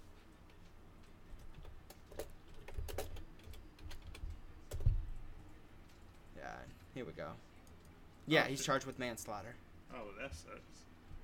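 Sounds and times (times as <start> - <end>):
typing on a computer keyboard: 1.4 - 5.0
speech: 7.0 - 7.5, 8.3 - 10.9.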